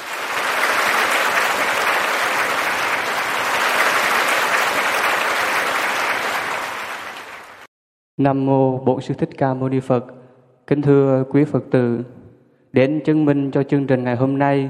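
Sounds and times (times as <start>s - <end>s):
audience applause at a Buddhist program welcoming a lawyer guest: 0.0s - 7.7s
speech: 8.2s - 14.6s.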